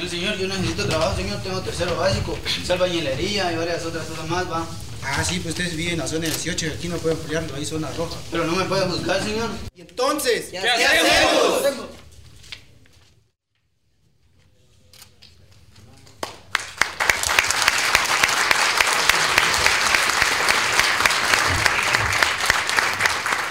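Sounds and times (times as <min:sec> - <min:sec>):
speech: 0:00.0 - 0:12.0
crowd applause: 0:16.2 - 0:23.5.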